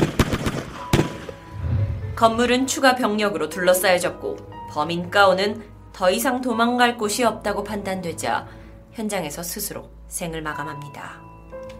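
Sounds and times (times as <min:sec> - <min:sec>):
gunshots during a shootout: 0:00.0 - 0:01.4
low rumbling tail: 0:01.4 - 0:03.2
speech: 0:02.2 - 0:11.3.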